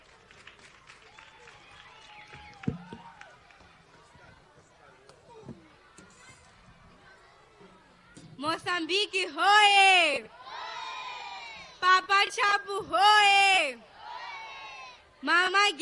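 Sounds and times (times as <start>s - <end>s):
audience applause: 0.0s - 3.9s
speech: 8.5s - 10.4s, 11.9s - 13.9s, 15.2s - 15.8s.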